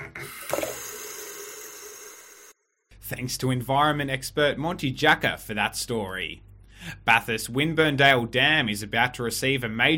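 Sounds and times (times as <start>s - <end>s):
water running from a tap: 0.3s - 2.5s
speech: 3.2s - 9.9s.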